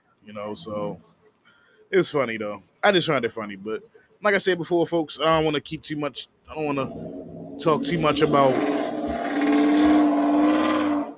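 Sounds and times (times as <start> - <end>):
speech: 0.2 - 1.2, 1.9 - 8.8
loud car roaring past: 6.8 - 11.1.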